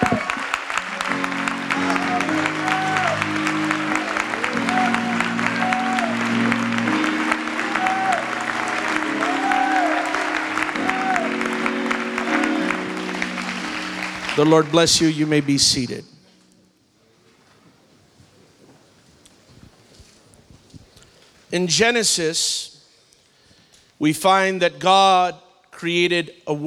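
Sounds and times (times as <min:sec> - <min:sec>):
audience applauding: 0:00.0 - 0:16.0
speech: 0:14.4 - 0:16.1, 0:21.5 - 0:22.7, 0:24.0 - 0:26.6.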